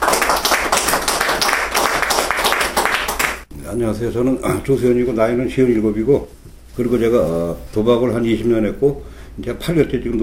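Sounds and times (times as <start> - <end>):
crowd applauding: 0.0 - 3.4
speech: 3.8 - 10.2.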